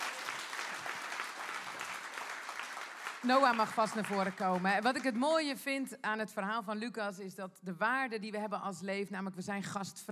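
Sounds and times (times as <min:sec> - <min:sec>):
audience applause: 0:00.0 - 0:05.1
speech: 0:03.2 - 0:10.1.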